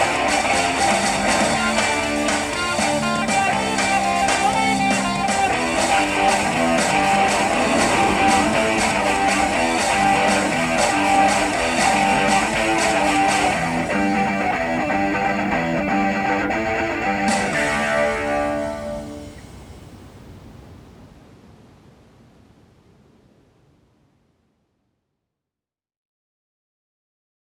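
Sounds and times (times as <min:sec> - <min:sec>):
laptop music: 0:00.0 - 0:19.4.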